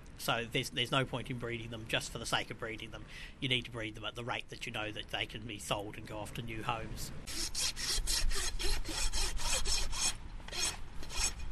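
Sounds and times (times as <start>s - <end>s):
speech: 0.2s - 7.6s
farrier trimming donkey hooves: 7.3s - 11.4s.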